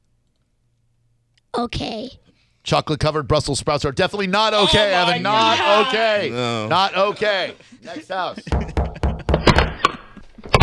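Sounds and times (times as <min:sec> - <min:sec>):
speech: 0:01.6 - 0:08.9
laughter: 0:04.5 - 0:10.5
knocking on a wooden door: 0:08.5 - 0:09.8.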